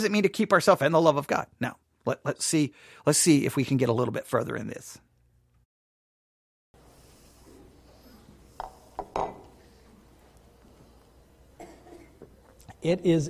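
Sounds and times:
speech: 0.0 - 5.0, 12.8 - 13.2
glass clinking while drinking water: 8.6 - 9.6.

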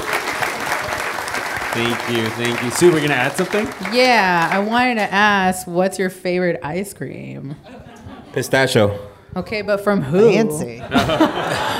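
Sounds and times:
audience applause: 0.0 - 5.4
speech: 1.8 - 11.7
laughter: 7.6 - 9.0, 10.0 - 11.7.

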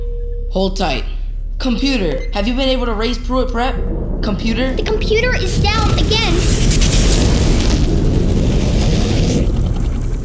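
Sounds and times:
speech: 0.5 - 7.0
water tank explosion roar: 3.5 - 10.2
hissing crackling bursts: 3.8 - 10.2.

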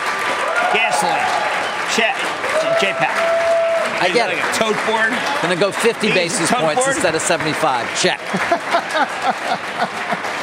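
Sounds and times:
crowd applause at stock exchange opening bell: 0.0 - 10.4
higher-pitched cheering voices: 0.0 - 10.4
speech: 0.7 - 10.4
laughter: 4.0 - 10.4.

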